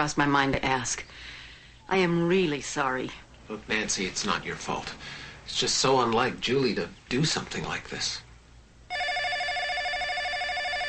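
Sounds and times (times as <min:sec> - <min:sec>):
speech: 0:00.0 - 0:08.2
telephone ringing: 0:08.9 - 0:10.8.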